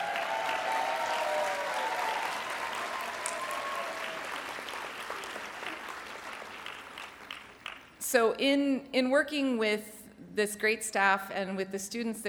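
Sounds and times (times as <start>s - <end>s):
audience applause at a Federation gathering welcoming guests: 0.0s - 7.9s
speech: 8.1s - 12.2s.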